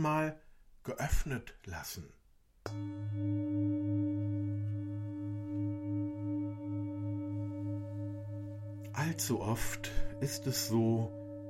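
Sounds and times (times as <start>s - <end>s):
speech: 0.0s - 4.0s, 9.0s - 11.2s
meditation gong ringing: 2.7s - 11.4s.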